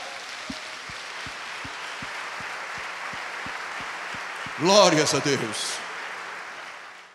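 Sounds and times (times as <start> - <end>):
rhythmic beat: 0.0 - 5.0
audience applause: 0.0 - 7.1
speech: 4.6 - 5.8.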